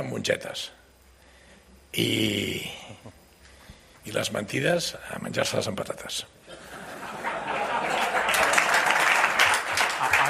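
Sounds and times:
speech: 0:00.0 - 0:00.8, 0:01.9 - 0:03.2, 0:04.0 - 0:06.4
laughter: 0:06.5 - 0:10.2
board of directors applauding: 0:07.6 - 0:10.2.

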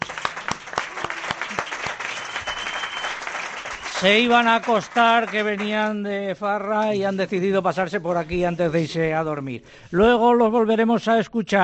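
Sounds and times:
audience applause: 0:00.0 - 0:06.0
speech: 0:04.0 - 0:11.6.

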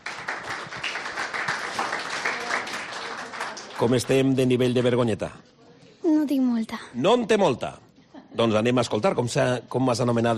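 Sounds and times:
audience applause: 0:00.0 - 0:04.9
speech: 0:03.8 - 0:05.5, 0:06.3 - 0:07.8, 0:08.4 - 0:10.3.

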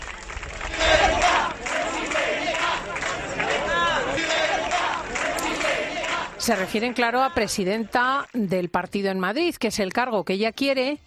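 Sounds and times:
crowd chanting presidenta: 0:00.6 - 0:08.1
speech: 0:06.4 - 0:11.0.

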